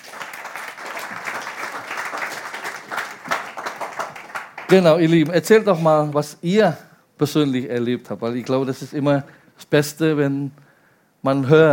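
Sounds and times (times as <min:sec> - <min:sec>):
audience applause: 0:00.0 - 0:05.3
speech: 0:04.7 - 0:10.6, 0:11.2 - 0:11.7.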